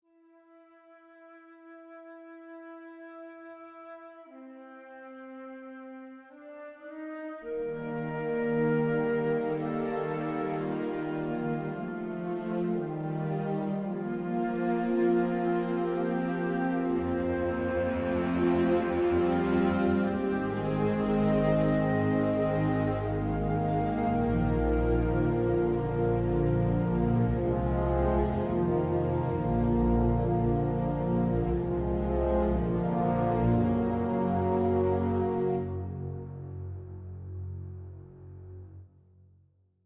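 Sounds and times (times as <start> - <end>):
world music: 7.5 - 38.4.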